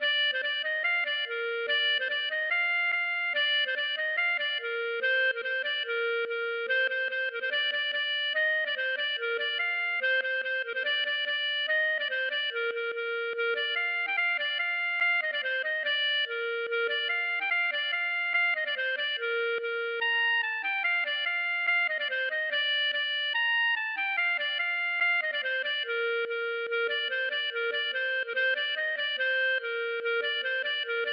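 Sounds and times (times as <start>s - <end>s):
gavotte: 0.0s - 31.1s.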